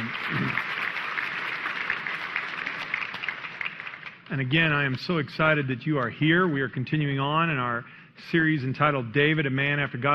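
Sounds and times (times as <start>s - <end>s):
audience applause: 0.0s - 4.7s
speech: 4.3s - 10.1s.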